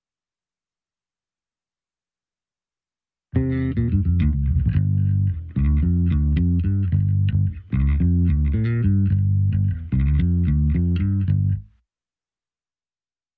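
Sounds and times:
bass playing alone: 3.4 - 11.7.

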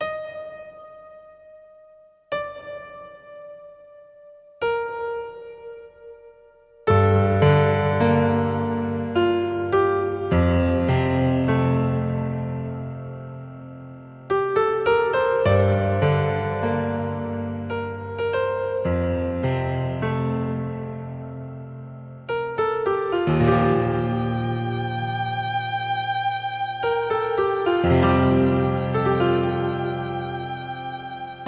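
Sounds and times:
piano: 0.0 - 31.4
violin: 23.8 - 31.4.

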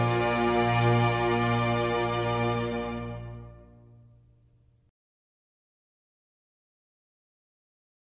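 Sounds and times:
string orchestra playing a concerto: 0.0 - 4.0.

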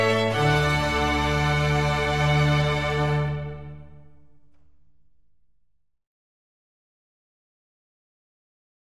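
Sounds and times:
string concerto in D minor: 0.0 - 5.1.

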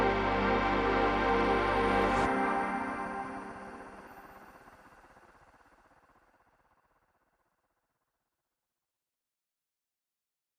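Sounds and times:
ambient music mix: 0.0 - 6.2.

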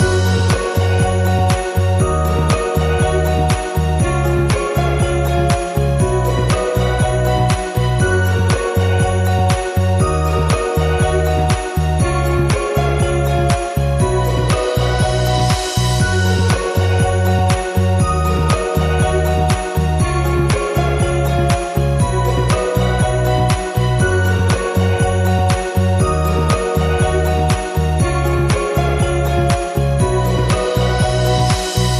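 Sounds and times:
music loop without melody: 0.0 - 31.9.

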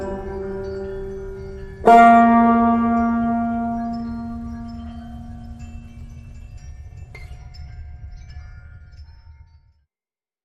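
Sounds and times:
suspense music: 0.0 - 6.6.

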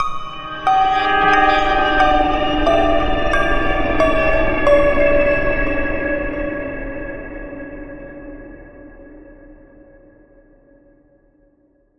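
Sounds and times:
peculiar dreamy piano music: 0.0 - 7.2.

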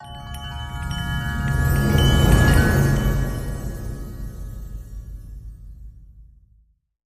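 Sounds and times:
winter storm chimes: 0.0 - 6.0.

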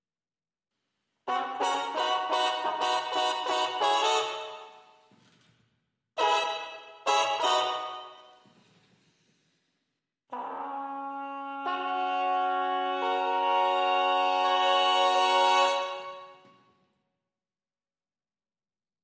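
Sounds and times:
clean trumpets playing: 1.3 - 5.0, 6.2 - 8.4, 10.3 - 16.6.

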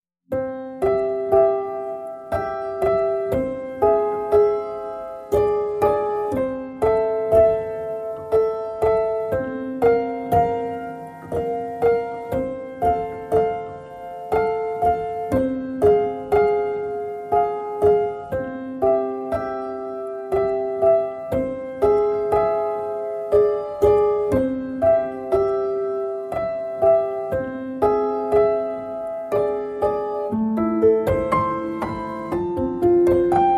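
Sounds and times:
solo piano: 0.3 - 33.5.

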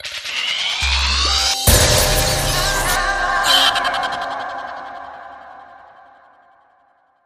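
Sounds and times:
rising sting with smash: 0.2 - 5.4.

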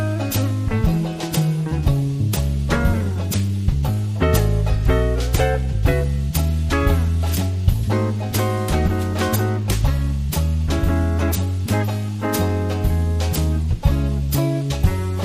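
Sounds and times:
easy swing light jazz guitar: 0.0 - 15.2.

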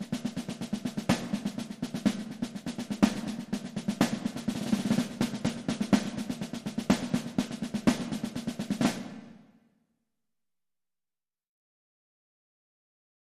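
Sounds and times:
marching band loop: 0.0 - 9.4.

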